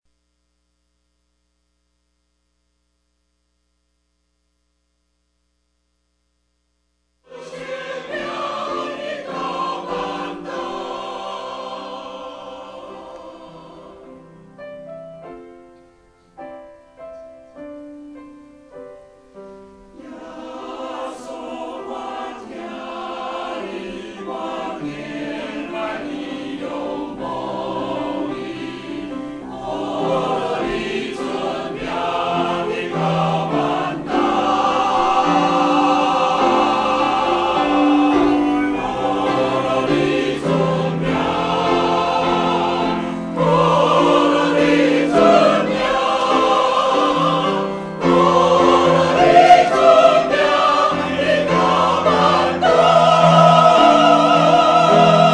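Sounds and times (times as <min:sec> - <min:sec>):
choir singing: 0:07.3 - 0:14.5, 0:19.9 - 0:55.3.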